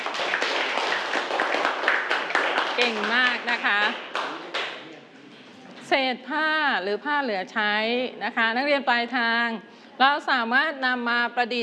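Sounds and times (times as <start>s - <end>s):
class of students clapping for group five: 0.0s - 4.8s
speech: 2.8s - 4.1s, 5.9s - 11.6s.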